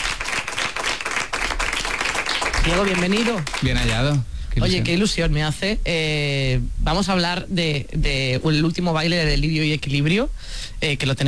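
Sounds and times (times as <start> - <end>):
crowd applauding a guest: 0.0 - 4.8
speech: 2.6 - 11.2.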